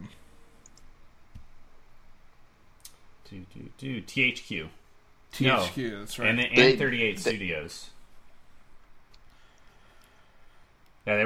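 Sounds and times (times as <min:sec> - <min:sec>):
hiss: 0:00.0 - 0:11.2
mouse clicks on a web link: 0:00.6 - 0:01.5
speech: 0:03.3 - 0:04.8, 0:05.4 - 0:08.0, 0:11.1 - 0:11.2.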